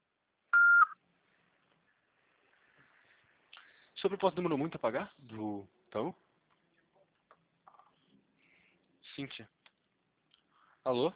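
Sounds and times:
electronic voicemail beep after the recorded greeting: 0:00.6 - 0:01.0
speech: 0:04.0 - 0:06.2, 0:09.2 - 0:09.6, 0:10.8 - 0:11.1.

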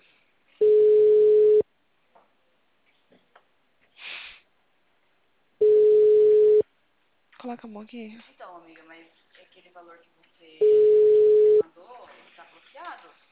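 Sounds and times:
telephone busy signal: 0:00.6 - 0:01.6, 0:05.6 - 0:06.6, 0:10.6 - 0:11.6
speech: 0:07.6 - 0:13.2.

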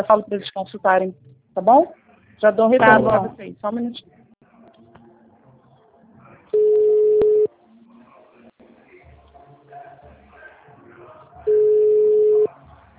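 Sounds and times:
speech: 0:00.0 - 0:04.2
faint voices: 0:01.8 - 0:12.9
telephone ringing tone: 0:06.6 - 0:07.5, 0:11.5 - 0:12.5.

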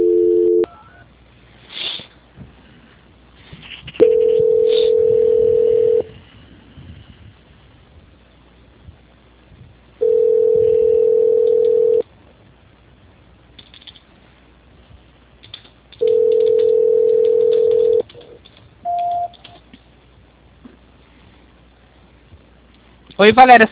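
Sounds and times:
telephone tones while a call is transferred: 0:00.0 - 0:00.8, 0:04.0 - 0:06.1, 0:10.0 - 0:12.0, 0:16.0 - 0:18.0, 0:18.9 - 0:19.4.

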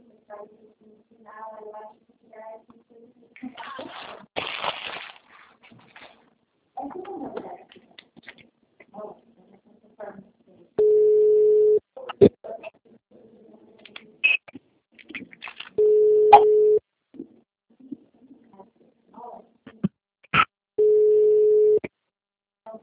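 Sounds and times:
telephone line tone while calling someone: 0:10.8 - 0:11.8, 0:15.8 - 0:16.8, 0:20.8 - 0:21.8.

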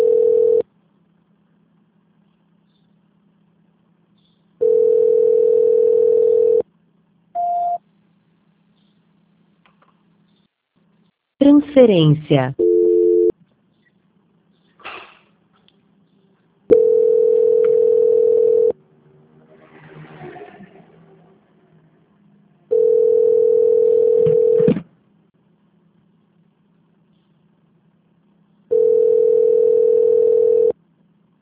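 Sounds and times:
telephone ringback tone of an unanswered call: 0:00.0 - 0:00.6, 0:04.6 - 0:06.6, 0:12.6 - 0:13.3, 0:16.7 - 0:18.8, 0:22.7 - 0:24.7, 0:28.7 - 0:30.8
speech: 0:11.8 - 0:12.6.

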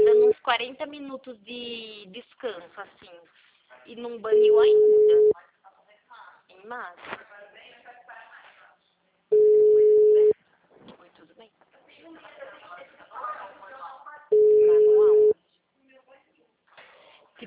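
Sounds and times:
low-pitched telephone line beeps: 0:00.0 - 0:00.4, 0:04.3 - 0:05.3, 0:09.3 - 0:10.3, 0:14.3 - 0:15.3
speech: 0:00.5 - 0:05.4, 0:06.6 - 0:07.5.

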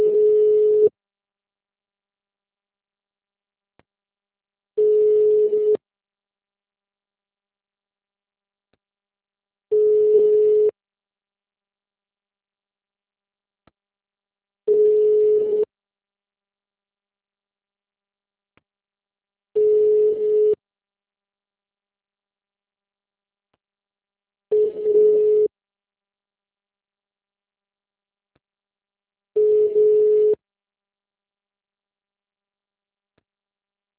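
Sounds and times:
telephone ringback tone on a call to a city hall: 0:00.0 - 0:00.9, 0:04.8 - 0:05.8, 0:09.7 - 0:10.7, 0:14.7 - 0:15.7, 0:19.6 - 0:20.6, 0:24.5 - 0:25.5, 0:29.4 - 0:30.4.

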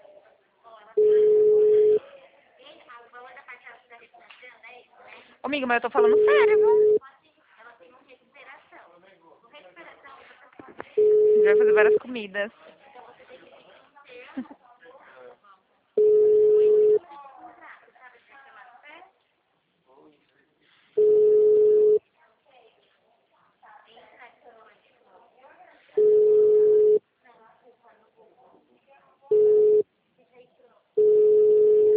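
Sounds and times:
phone line ringing unanswered on a call to city hall: 0:01.0 - 0:02.0, 0:06.0 - 0:07.0, 0:11.0 - 0:12.0, 0:16.0 - 0:17.0, 0:21.0 - 0:22.0, 0:26.0 - 0:27.0, 0:31.0 - 0:31.9
speech: 0:05.5 - 0:07.0, 0:11.5 - 0:12.6.

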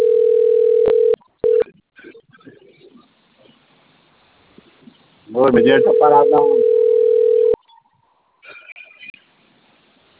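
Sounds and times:
telephone dial tone: 0:00.0 - 0:01.6, 0:05.9 - 0:07.6
speech: 0:05.4 - 0:06.8.

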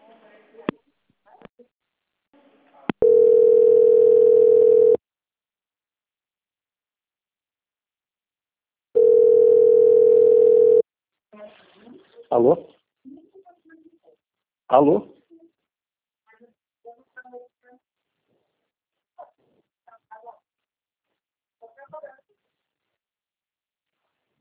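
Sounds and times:
telephone dial tone: 0:03.0 - 0:05.0, 0:09.0 - 0:10.8
speech: 0:12.4 - 0:12.7, 0:14.7 - 0:15.2.

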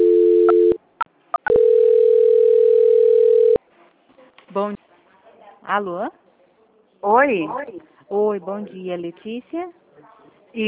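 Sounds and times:
electronic telephone tone during a call transfer: 0:00.0 - 0:00.8, 0:01.4 - 0:03.6
speech: 0:04.6 - 0:04.8, 0:05.8 - 0:06.2, 0:07.0 - 0:09.8.

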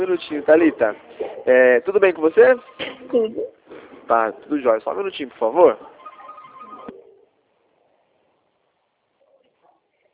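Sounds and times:
speech: 0:00.0 - 0:03.5, 0:04.1 - 0:05.9
telephone ringing: 0:05.9 - 0:07.0.

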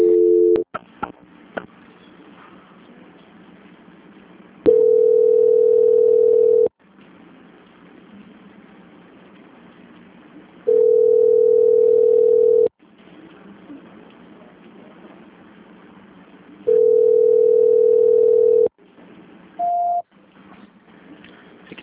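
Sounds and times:
telephone line tones during call transfer on a congested line: 0:00.0 - 0:00.6, 0:04.7 - 0:06.7, 0:10.7 - 0:12.7, 0:16.7 - 0:18.7, 0:19.6 - 0:20.0.

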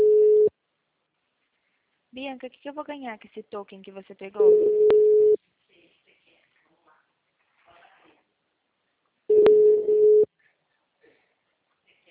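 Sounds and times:
telephone call tone beep while a call connects: 0:00.0 - 0:00.5, 0:04.4 - 0:05.4, 0:09.3 - 0:10.3
speech: 0:02.2 - 0:05.1.

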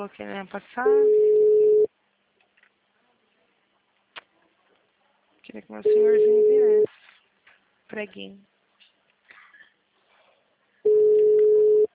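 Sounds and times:
speech: 0:00.0 - 0:01.3, 0:05.5 - 0:07.0, 0:07.9 - 0:08.5
telephone ringing tone on call: 0:00.9 - 0:01.9, 0:10.9 - 0:11.9.

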